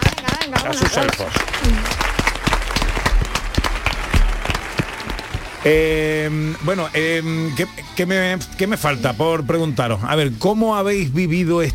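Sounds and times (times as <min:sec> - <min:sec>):
audience applause: 0:00.0 - 0:06.8
speech: 0:00.5 - 0:02.1, 0:05.6 - 0:11.7.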